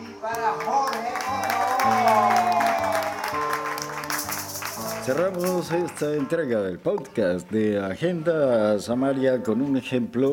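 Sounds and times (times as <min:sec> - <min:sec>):
audience applause: 0:00.4 - 0:06.3
speech: 0:05.1 - 0:10.3.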